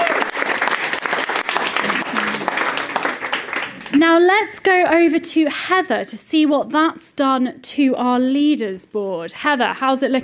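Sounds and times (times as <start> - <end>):
audience applause: 0.0 - 4.0
speech: 4.0 - 10.2.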